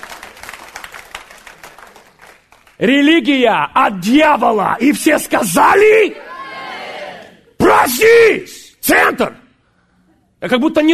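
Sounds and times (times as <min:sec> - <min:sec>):
crowd applauding in a large room: 0:00.0 - 0:02.8
speech: 0:02.8 - 0:06.3, 0:07.9 - 0:09.4, 0:10.4 - 0:10.9.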